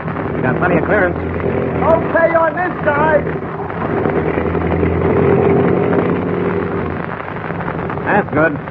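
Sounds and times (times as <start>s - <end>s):
small airplane engine droning as the plane taxis: 0.3s - 8.1s
speech: 0.5s - 4.4s, 8.1s - 8.6s.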